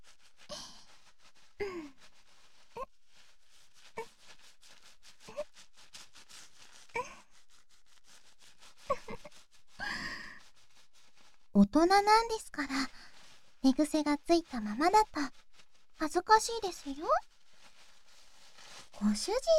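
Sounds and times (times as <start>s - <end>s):
hair being lathered with shampoo: 0.0s - 19.5s
speech: 1.6s - 2.1s, 11.6s - 13.0s, 13.6s - 15.4s, 16.0s - 17.3s, 19.0s - 19.5s.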